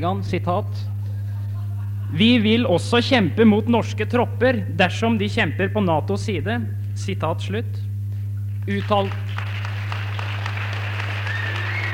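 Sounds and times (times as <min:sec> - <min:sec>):
speech: 0:00.0 - 0:01.0, 0:02.1 - 0:07.9, 0:08.7 - 0:09.5
laughter: 0:00.8 - 0:02.7
audience applause: 0:08.8 - 0:11.9.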